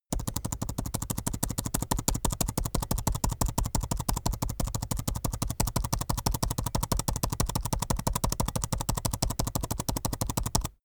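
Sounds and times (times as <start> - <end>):
fast laptop keyboard backspace key tapping: 0.1 - 10.8.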